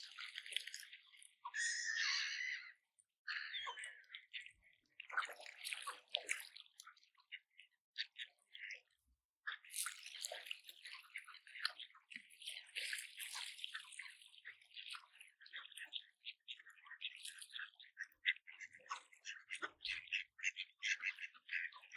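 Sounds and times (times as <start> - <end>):
ducks feeding, dabbling and splashing: 0.0 - 21.9.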